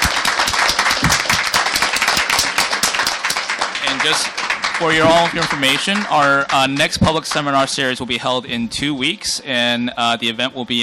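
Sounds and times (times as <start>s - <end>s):
audience applause for panelists: 0.0s - 7.8s
speech: 3.9s - 10.8s.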